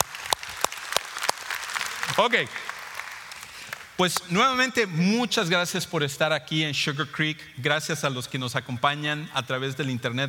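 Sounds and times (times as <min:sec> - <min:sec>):
loud audience applause: 0:00.0 - 0:04.0
speech: 0:02.1 - 0:02.7, 0:04.0 - 0:10.2.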